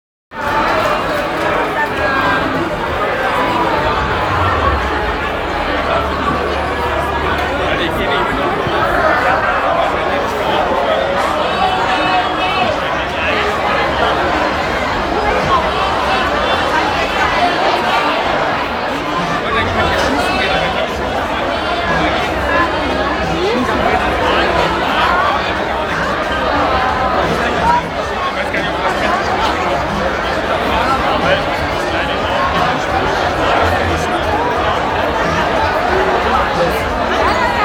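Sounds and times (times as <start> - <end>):
Oktoberfest hall ambience: 0.3 - 37.6.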